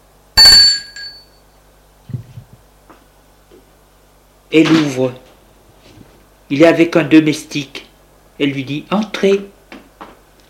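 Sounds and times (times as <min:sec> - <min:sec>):
doorbell ringing: 0:00.4 - 0:01.4
speech: 0:04.5 - 0:05.3, 0:06.5 - 0:07.8, 0:08.4 - 0:09.5.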